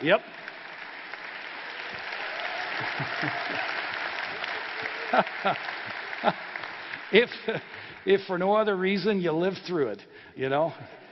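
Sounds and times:
speech: 0.0 - 0.5, 2.8 - 3.8, 5.1 - 6.5, 7.1 - 11.0
audience applause: 0.0 - 8.8
laughter: 2.6 - 7.8.

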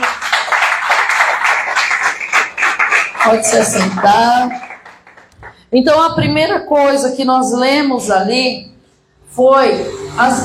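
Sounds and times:
audience applauding: 0.0 - 5.6
speech: 3.2 - 4.6, 5.7 - 8.7, 9.3 - 10.4.

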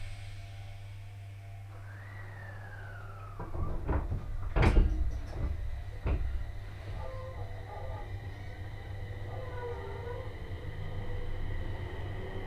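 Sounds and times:
Tohoku Main Line train hum: 0.0 - 12.4
faint whining tones: 0.0 - 12.4
thin tone sliding downward: 1.7 - 3.9
train clunks and rattles: 3.2 - 10.3.

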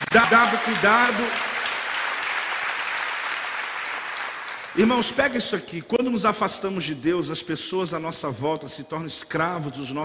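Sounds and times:
audience applause: 0.0 - 5.1
speech: 0.1 - 1.5, 4.8 - 10.0.

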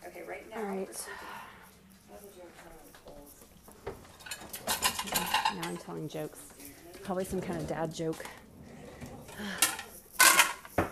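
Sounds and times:
dishes clattering while emptying a dishwasher: 3.8 - 6.2, 7.0 - 10.9
speech: 5.7 - 8.4, 9.4 - 9.6.

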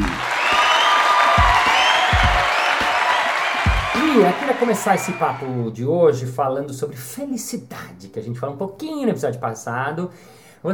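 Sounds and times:
crowd applause: 0.0 - 5.5
speech: 4.2 - 10.7.

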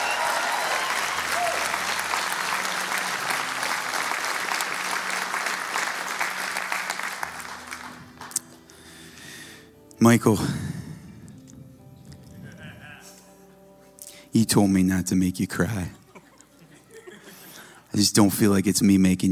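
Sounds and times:
church audience cheering: 0.0 - 7.6
church audience applauding: 0.0 - 8.6
speech: 10.0 - 10.7, 14.4 - 16.0, 18.0 - 19.3
laughter: 15.8 - 17.9.

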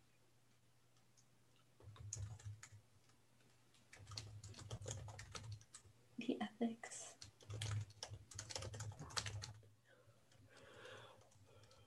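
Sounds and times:
typing on a computer keyboard: 1.2 - 5.9, 7.1 - 9.7, 10.3 - 11.8
speech: 6.3 - 7.2.

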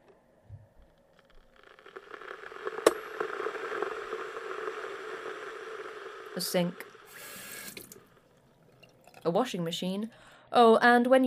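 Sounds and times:
kettle: 1.6 - 9.4
speech: 6.4 - 6.9, 9.2 - 11.2.

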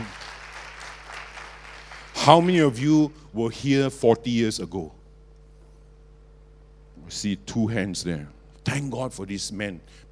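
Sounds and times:
audience applause: 0.0 - 2.6
speech: 2.3 - 5.0, 7.1 - 10.0.

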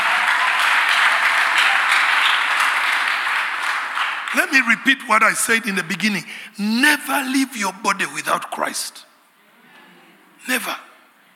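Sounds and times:
audience clapping: 0.0 - 5.9
speech: 4.4 - 9.1, 10.4 - 10.9.

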